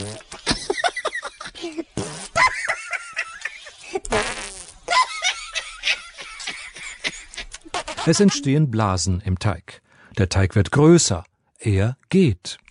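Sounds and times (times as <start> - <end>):
fart sound effect: 0.0 - 0.4, 2.0 - 2.6, 4.0 - 4.9, 7.7 - 8.4
laughter: 0.4 - 1.8, 2.4 - 4.1, 4.9 - 8.7
speech: 8.0 - 12.6.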